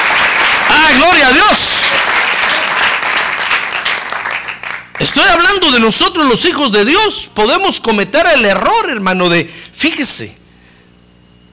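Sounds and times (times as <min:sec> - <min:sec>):
church congregation applause in praise of God: 0:00.0 - 0:05.8
speech: 0:00.9 - 0:02.2, 0:05.1 - 0:10.4.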